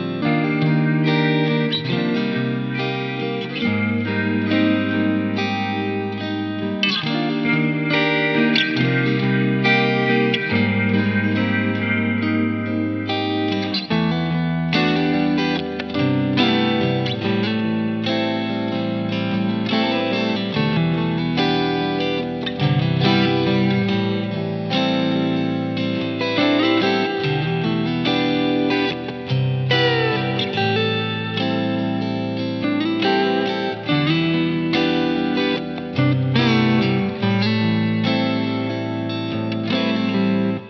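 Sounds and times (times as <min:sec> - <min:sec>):
laid-back guitars playing: 0:00.0 - 0:40.6.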